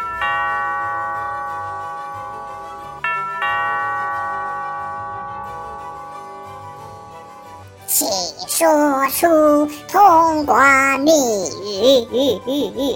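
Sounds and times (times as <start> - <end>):
castle doorbell chiming: 0.0 - 7.8
speech: 8.6 - 12.9
laughter: 11.7 - 12.9.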